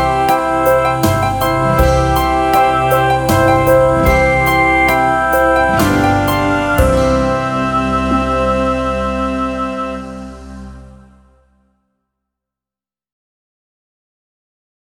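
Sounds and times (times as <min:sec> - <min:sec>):
recorder playing a lullaby: 0:00.0 - 0:11.0.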